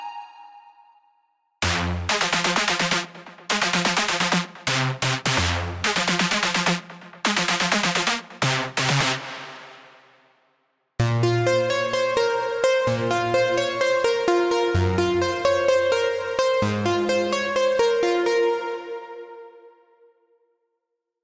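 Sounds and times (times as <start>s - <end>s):
big room progressive house music: 1.6s - 9.8s, 11.0s - 19.6s.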